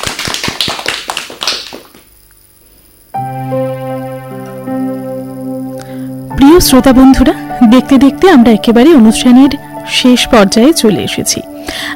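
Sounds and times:
claps for a young child singer: 0.0s - 2.1s
sustained harmonic tone: 3.1s - 11.9s
speech: 6.6s - 11.9s.

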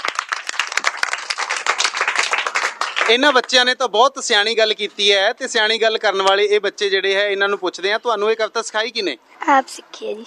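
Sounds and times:
applause for children who recited a poem: 0.0s - 3.8s
speech: 3.1s - 10.2s.

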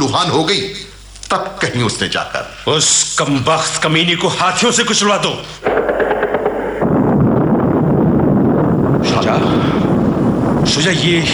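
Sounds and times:
speech: 0.1s - 6.1s, 10.7s - 11.3s
impact: 5.6s - 9.0s
cannon fire: 5.6s - 10.6s.

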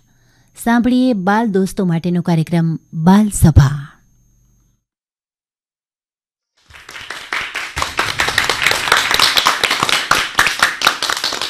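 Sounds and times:
speech: 0.6s - 3.9s
children clapping at a kids' gathering: 6.6s - 11.4s.

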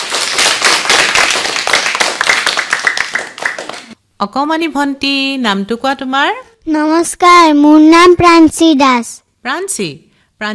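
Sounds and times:
audience clapping at a stage singing event: 0.0s - 4.0s
speech: 4.2s - 10.5s.

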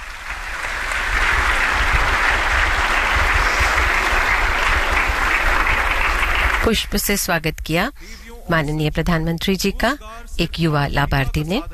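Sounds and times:
audience applause at an official event welcoming the Prime Minister: 0.0s - 6.9s
speech: 6.6s - 11.7s.

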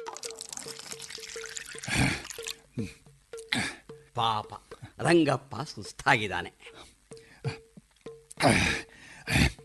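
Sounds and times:
gentle water trickling: 0.0s - 2.7s
speech: 2.8s - 3.0s, 4.2s - 6.8s, 8.4s - 8.8s.

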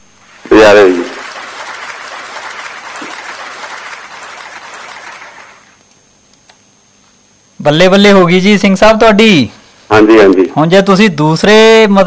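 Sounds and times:
studio applause for a correct quiz answer: 0.4s - 5.8s
speech: 0.5s - 1.1s, 7.6s - 12.0s.

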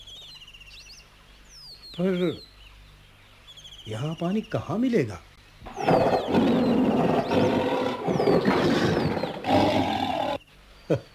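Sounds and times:
speech: 2.0s - 2.5s, 3.9s - 6.1s
lion roaring: 5.7s - 10.4s.

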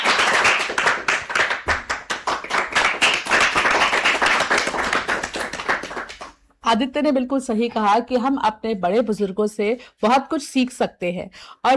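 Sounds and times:
children clapping hands: 0.0s - 6.4s
speech: 6.7s - 11.7s.

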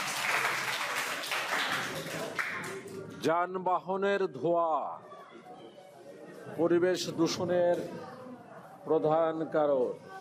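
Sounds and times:
pupils clapping in a classroom: 0.0s - 3.0s
speech: 3.2s - 5.1s, 6.5s - 8.2s, 8.8s - 10.1s.

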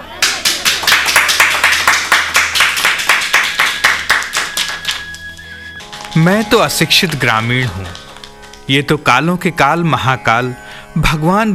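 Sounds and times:
audience clapping in unison to welcome a folk singer in Ujjain: 0.0s - 8.7s
speech: 6.2s - 8.0s, 8.7s - 11.5s.

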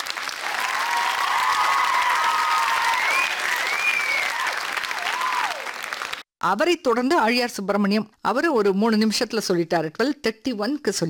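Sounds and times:
loud applause: 0.0s - 6.3s
speech: 6.4s - 11.0s.

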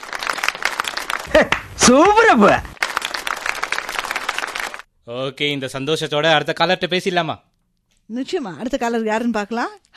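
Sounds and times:
applause: 0.0s - 4.9s
speech: 1.3s - 2.7s, 5.1s - 7.5s, 8.1s - 9.9s.

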